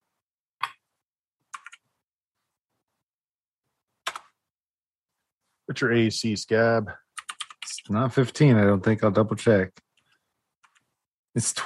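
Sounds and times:
typing on a computer keyboard: 1.5s - 1.9s, 4.0s - 4.4s, 7.2s - 7.8s, 10.6s - 10.9s
speech: 5.7s - 7.0s, 7.9s - 9.8s, 11.4s - 11.6s.

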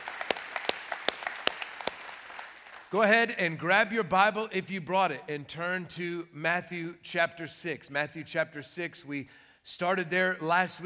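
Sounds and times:
church congregation applauding: 0.0s - 3.0s
speech: 2.9s - 10.8s.

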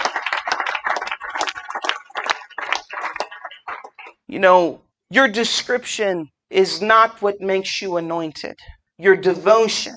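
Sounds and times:
audience clapping hands: 0.0s - 4.3s
speech: 4.3s - 9.9s.

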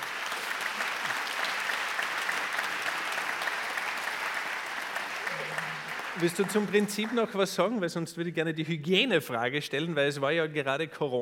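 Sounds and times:
audience applause: 0.0s - 7.7s
speech: 6.2s - 11.1s.

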